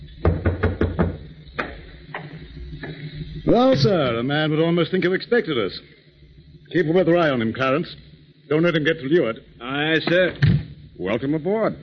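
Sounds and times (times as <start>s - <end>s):
knock on a door: 0.2s - 1.2s
speech: 3.5s - 6.0s, 6.7s - 11.8s.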